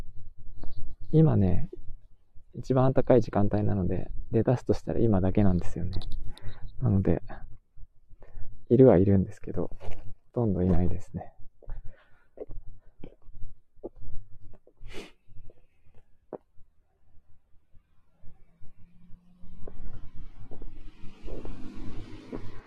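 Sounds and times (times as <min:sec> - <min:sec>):
speech: 0:01.1 - 0:01.8, 0:02.6 - 0:07.5, 0:08.7 - 0:11.3
car with snow chains driving past: 0:18.8 - 0:22.6.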